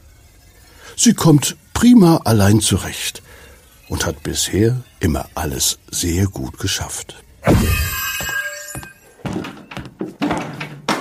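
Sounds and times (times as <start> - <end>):
speech: 1.0 - 3.2, 3.9 - 7.9
wooden chair falling over: 7.5 - 11.0.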